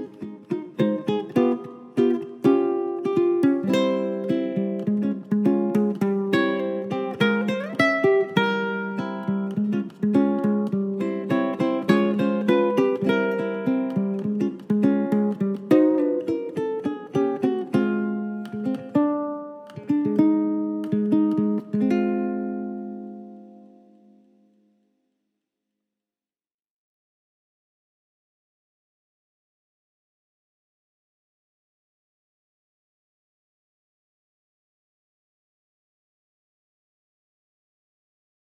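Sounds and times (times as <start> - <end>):
ukulele: 0.0 - 24.8.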